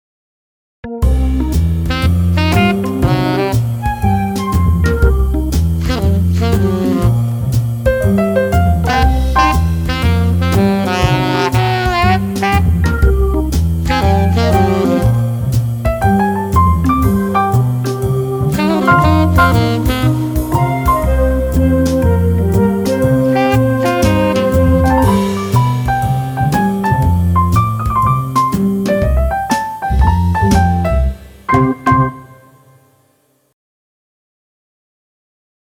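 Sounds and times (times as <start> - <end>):
jazz music: 0.9 - 33.0.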